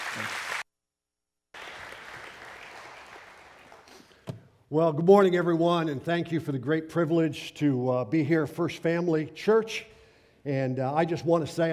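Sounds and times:
church congregation applauding to welcome a guest preacher: 0.0 - 0.6, 1.6 - 4.2
speech: 0.2 - 0.4, 4.7 - 11.7.

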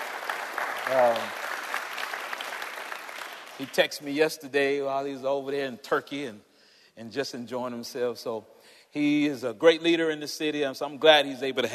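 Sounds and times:
audience applause for their pastor: 0.0 - 3.8
speech: 0.9 - 1.4, 3.6 - 11.7.

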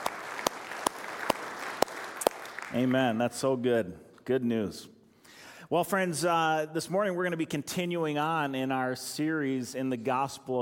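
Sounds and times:
audience applause: 0.0 - 2.9
speech: 2.7 - 5.0, 5.7 - 10.5.

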